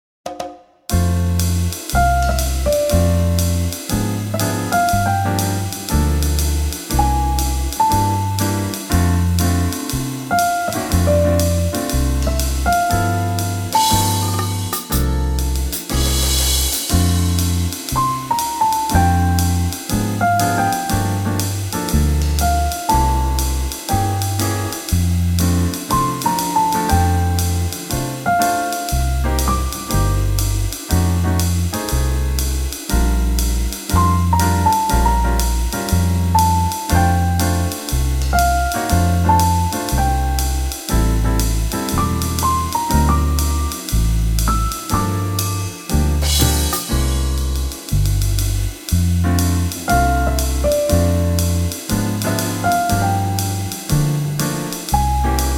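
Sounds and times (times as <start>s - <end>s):
piano: 0.9s - 55.5s.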